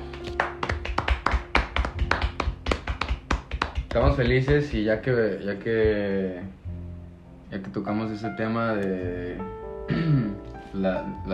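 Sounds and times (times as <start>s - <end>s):
people clapping: 0.0s - 4.8s
speech: 3.9s - 6.6s, 7.5s - 11.3s.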